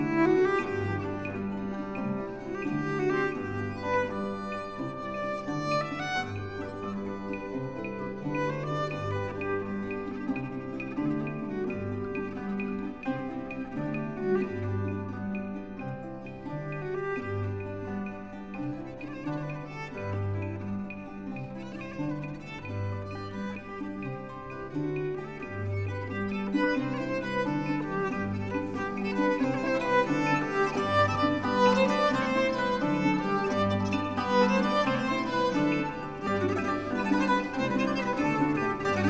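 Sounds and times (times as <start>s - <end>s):
double harp: 0.0s - 39.0s
guitar: 0.0s - 39.0s
soprano viol improvisation: 0.0s - 39.0s.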